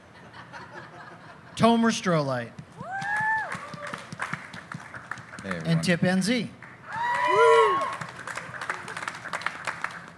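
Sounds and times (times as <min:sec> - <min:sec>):
speech: 0:01.6 - 0:02.6, 0:05.4 - 0:06.6
audience cheers and whoops: 0:02.8 - 0:04.2, 0:06.8 - 0:09.0
audience applause: 0:02.9 - 0:05.9, 0:06.6 - 0:10.1.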